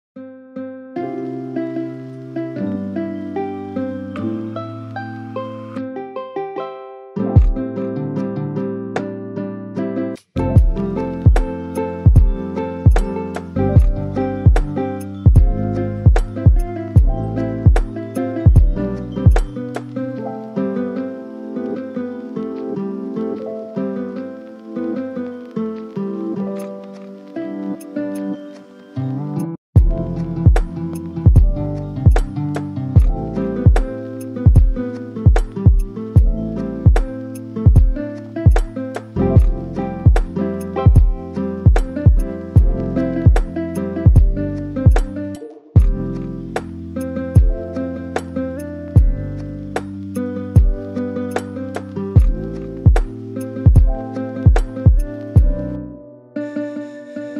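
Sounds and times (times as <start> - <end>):
lofi music: 0.2 - 57.3.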